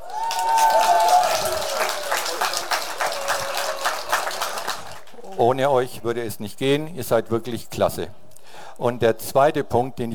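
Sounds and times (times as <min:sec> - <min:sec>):
audience applause: 0:00.0 - 0:05.4
speech: 0:05.4 - 0:08.2, 0:08.8 - 0:10.1.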